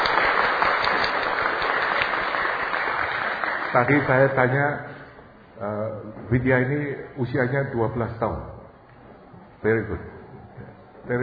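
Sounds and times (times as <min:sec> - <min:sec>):
audience applause: 0:00.0 - 0:04.3
speech: 0:03.7 - 0:04.9, 0:05.6 - 0:08.5, 0:09.6 - 0:10.1.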